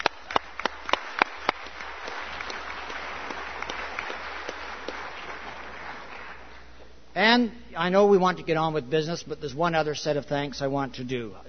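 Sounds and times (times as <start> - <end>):
audience applause: 0.0 - 6.6
speech: 7.3 - 11.4.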